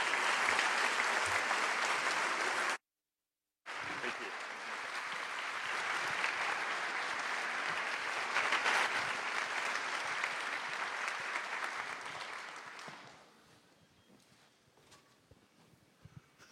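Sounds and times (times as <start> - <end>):
audience applause welcoming two speakers at an evening event in Madison: 0.0 - 2.8, 3.7 - 13.3.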